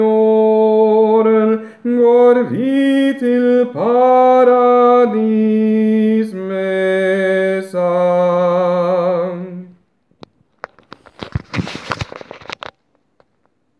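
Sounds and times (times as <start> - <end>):
tenor singing: 0.0 - 9.8.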